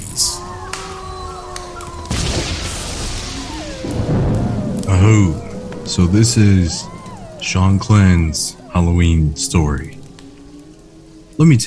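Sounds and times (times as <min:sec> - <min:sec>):
thunder sound effect: 0:00.0 - 0:11.0
wind: 0:00.0 - 0:11.6
speech: 0:05.0 - 0:10.0, 0:11.4 - 0:11.6.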